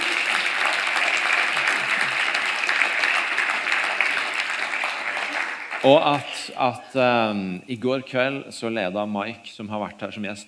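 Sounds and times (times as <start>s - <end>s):
audience applauding: 0.0s - 6.6s
speech: 5.8s - 10.4s.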